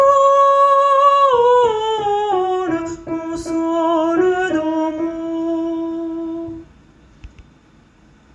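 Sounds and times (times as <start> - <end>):
alto part: 0.0 - 6.7.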